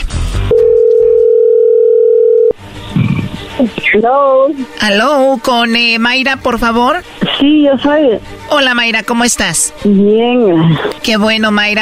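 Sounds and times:
telephone dial tone while number is dialed: 0.5 - 2.6
speech: 3.6 - 11.8.

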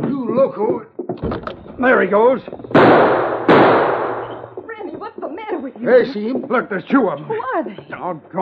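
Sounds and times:
speech: 0.3 - 3.9, 5.7 - 8.4
gunshot sound effect in a western radio drama: 2.7 - 4.5.

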